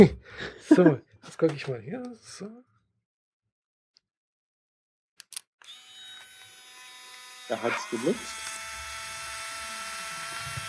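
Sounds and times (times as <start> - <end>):
speech: 0.0 - 2.7, 7.5 - 8.5
instant camera motor whirring as it ejects a print: 5.6 - 10.6.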